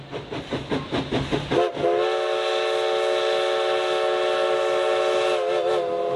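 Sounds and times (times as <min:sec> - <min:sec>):
historic steam locomotive chuffing: 0:00.0 - 0:06.1
steam locomotive whistle: 0:01.6 - 0:06.1.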